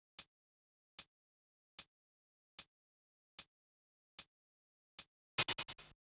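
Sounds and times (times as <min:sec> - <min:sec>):
hi-hat drum track in B minor: 0:05.4 - 0:06.0.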